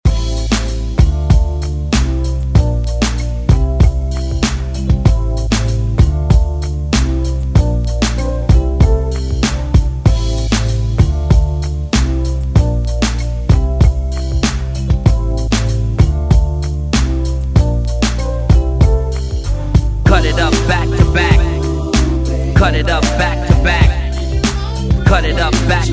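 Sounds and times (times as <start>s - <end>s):
DJ intro outro hype edit music: 0.1s - 25.9s.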